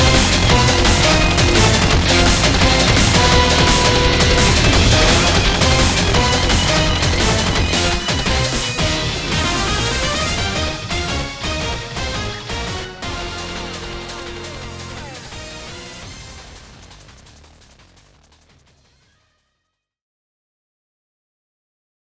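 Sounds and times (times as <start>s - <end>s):
background music: 0.0s - 16.9s.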